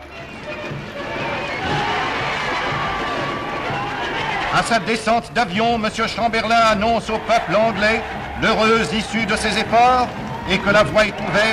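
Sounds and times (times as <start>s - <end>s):
crowd in London cheering and applauding Neville Chamberlain: 0.0s - 11.5s
speech: 4.5s - 11.5s.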